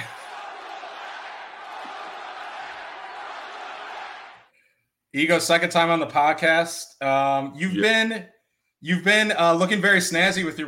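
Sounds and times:
crowd chant as welcome-back cheer: 0:00.0 - 0:04.5
speech: 0:05.2 - 0:10.6.

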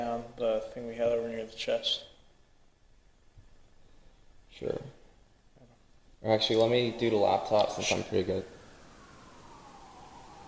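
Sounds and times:
speech: 0:00.4 - 0:02.1, 0:04.6 - 0:05.0, 0:06.2 - 0:08.6
police siren: 0:06.4 - 0:10.4.

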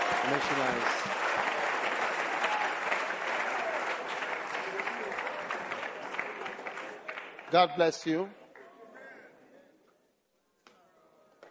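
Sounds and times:
audience applause: 0:00.0 - 0:08.1
speech: 0:00.3 - 0:01.2, 0:07.5 - 0:08.4.

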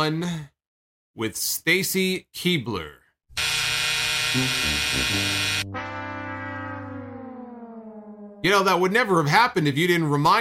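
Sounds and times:
speech: 0:00.0 - 0:00.5, 0:01.2 - 0:03.5, 0:04.3 - 0:05.8, 0:08.4 - 0:10.3
buzzer: 0:03.4 - 0:05.7.

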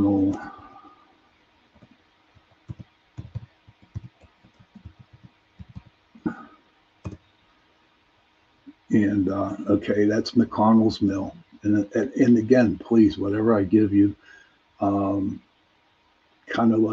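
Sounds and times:
typing a place name on a computer keyboard: 0:01.8 - 0:06.0
speech: 0:08.9 - 0:15.5, 0:16.5 - 0:16.9.

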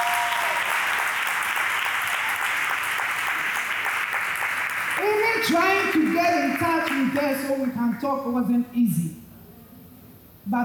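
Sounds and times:
crowd clapping: 0:00.0 - 0:08.2
speech: 0:05.4 - 0:09.2, 0:10.5 - 0:10.6.

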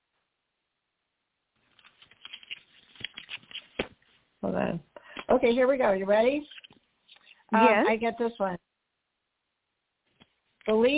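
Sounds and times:
playing cards rustling as one is drawn from a deck: 0:01.6 - 0:04.2, 0:06.4 - 0:07.4
speech: 0:04.5 - 0:06.6, 0:07.5 - 0:08.7, 0:10.6 - 0:10.9.

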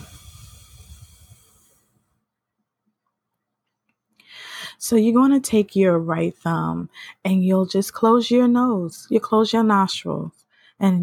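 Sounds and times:
forceful exhale after a held breath in a breathing exercise: 0:00.0 - 0:01.9
speech: 0:04.8 - 0:11.0.

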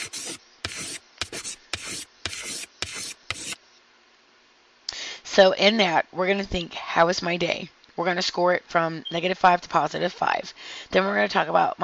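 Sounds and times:
pen writing on a pad: 0:00.0 - 0:03.6
speech: 0:05.4 - 0:11.8.

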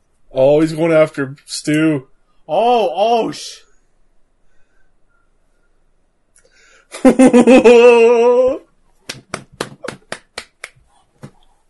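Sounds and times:
speech: 0:00.3 - 0:03.6, 0:06.9 - 0:09.4
sustained wavering vocal cry: 0:07.4 - 0:08.7
hand claps: 0:09.1 - 0:11.4.

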